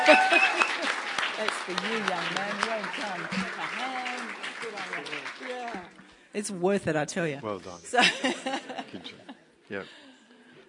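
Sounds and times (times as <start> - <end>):
audience applause: 0.0 - 6.1
speech: 0.1 - 0.6, 1.4 - 3.4, 6.4 - 10.0
laughter: 8.0 - 9.4.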